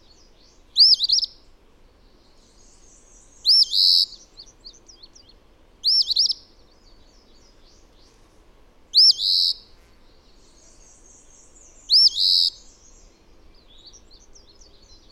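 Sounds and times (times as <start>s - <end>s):
bird song of high bright looping arched notes: 0.0s - 8.3s, 8.9s - 15.1s.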